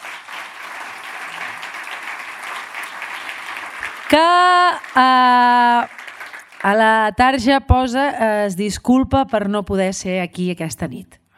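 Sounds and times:
applause: 0.0 - 7.2
speech: 4.1 - 6.0, 6.6 - 11.2.

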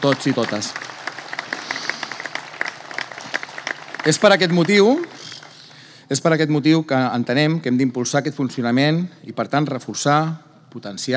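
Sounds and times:
speech: 0.0 - 1.0, 4.0 - 5.1, 6.1 - 11.1
audience applause: 0.0 - 5.6.

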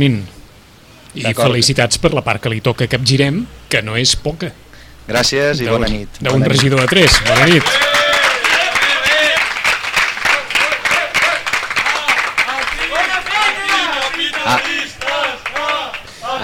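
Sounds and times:
speech: 0.0 - 0.3, 1.2 - 7.9
voices calling out and chattering: 5.2 - 16.4
audience applause: 6.3 - 16.4.

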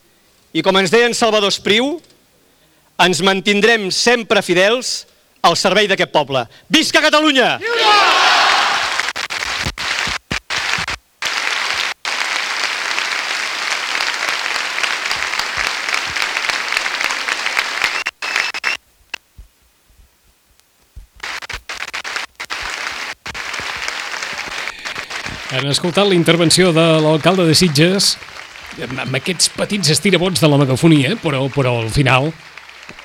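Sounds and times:
speech: 0.5 - 2.1, 3.0 - 8.2, 25.7 - 33.0
crowd applauding after a speech by the mayor of Sitges: 7.8 - 18.8, 21.2 - 33.0.

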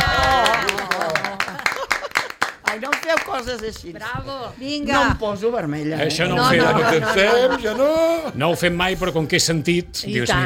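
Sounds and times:
laughter: 0.0 - 2.6, 6.3 - 8.4
people clapping in a studio: 0.0 - 4.0
speech: 3.1 - 10.4.

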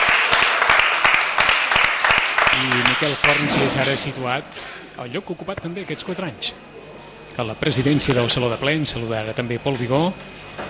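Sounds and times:
applause in a council chamber during a plenary session: 0.0 - 3.8
speech: 2.6 - 6.8, 7.4 - 10.6.

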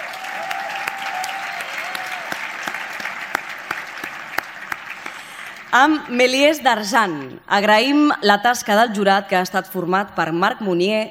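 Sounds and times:
audience applause: 0.0 - 6.1
speech: 5.7 - 11.0.

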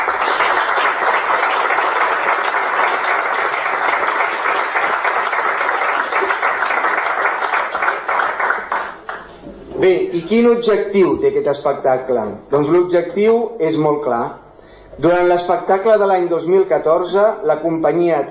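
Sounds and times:
audience applause: 0.0 - 9.3
speech: 9.8 - 14.4, 15.0 - 18.2.

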